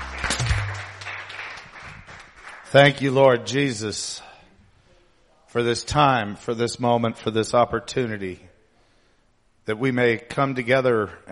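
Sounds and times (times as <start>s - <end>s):
church congregation applauding and cheering in praise of the Lord: 0.0s - 3.6s
speech: 2.7s - 4.3s, 5.5s - 8.5s, 9.6s - 11.3s.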